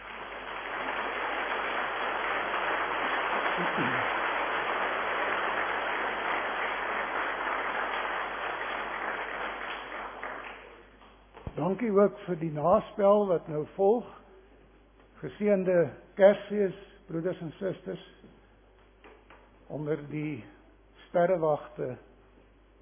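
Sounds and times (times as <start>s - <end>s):
audience applause: 0.0s - 10.9s
speech: 3.6s - 4.2s, 11.8s - 14.2s, 15.2s - 18.2s, 19.7s - 22.1s.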